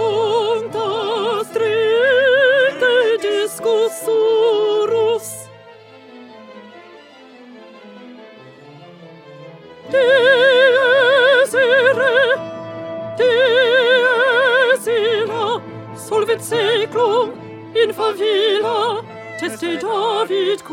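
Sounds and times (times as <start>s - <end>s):
alto singing: 0.0s - 5.5s, 9.9s - 20.7s.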